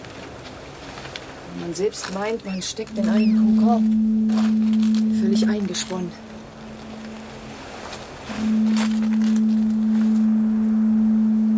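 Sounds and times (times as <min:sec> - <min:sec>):
speech: 0:01.6 - 0:06.3
foghorn: 0:02.5 - 0:11.5.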